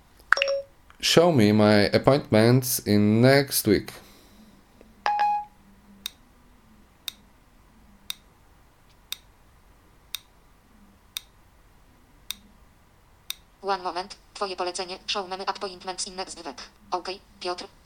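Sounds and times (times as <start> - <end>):
voice assistant button-press beep: 0.4 - 0.7, 5.1 - 5.6
speech: 1.0 - 4.0, 13.8 - 17.8.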